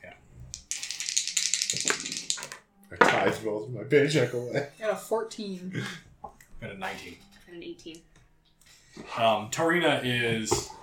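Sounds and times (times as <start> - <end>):
twenty-sided die rattling across a hard surface: 0.6 - 2.6
speech: 2.9 - 6.0, 6.6 - 8.1, 9.0 - 10.8.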